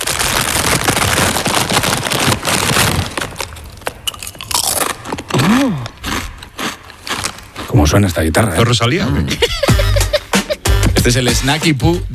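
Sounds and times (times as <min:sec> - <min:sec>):
person eating potato chips: 0:00.0 - 0:08.0
speech: 0:07.8 - 0:09.8, 0:11.0 - 0:12.1
laughter: 0:09.2 - 0:10.6.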